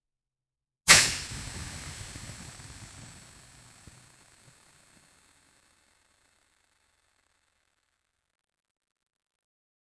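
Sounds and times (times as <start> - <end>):
fireworks popping: 0.9 - 8.1.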